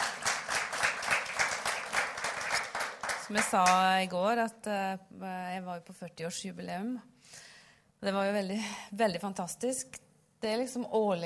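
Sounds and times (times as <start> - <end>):
audience applause for a preacher: 0.0 - 3.8
speech: 3.3 - 7.1, 8.0 - 11.2.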